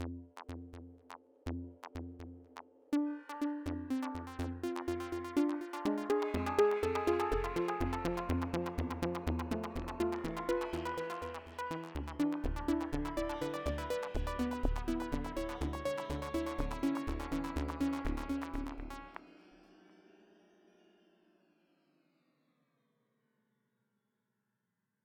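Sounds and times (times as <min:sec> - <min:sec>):
arpeggio: 0:03.0 - 0:18.9.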